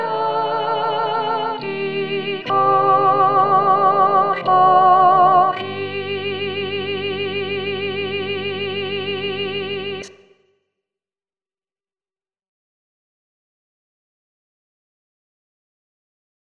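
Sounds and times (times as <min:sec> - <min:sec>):
soprano singing: 0:00.0 - 0:10.1.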